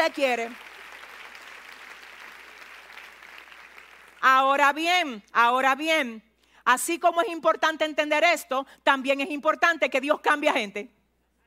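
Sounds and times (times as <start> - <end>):
speech: 0.0 - 0.7, 4.2 - 11.0
audience applause: 0.0 - 4.2.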